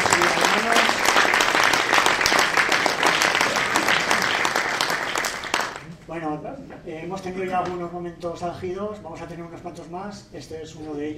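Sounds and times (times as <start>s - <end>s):
applause at a political plenary meeting: 0.0s - 5.9s
speech: 6.2s - 11.1s.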